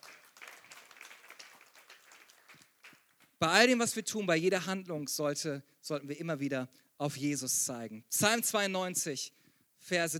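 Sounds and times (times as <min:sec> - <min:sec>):
audience applauding in a reverberant hall: 0:00.0 - 0:03.4
speech: 0:03.4 - 0:10.1.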